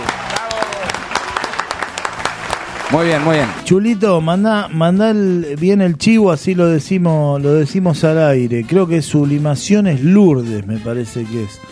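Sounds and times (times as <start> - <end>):
audience clapping: 0.0 - 3.6
speech: 2.9 - 11.7.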